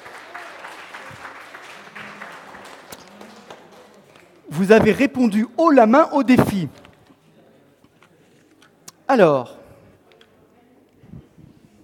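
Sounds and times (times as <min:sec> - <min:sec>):
applause, hands clapping: 0:00.0 - 0:05.4
speech: 0:04.5 - 0:06.8, 0:09.2 - 0:09.6.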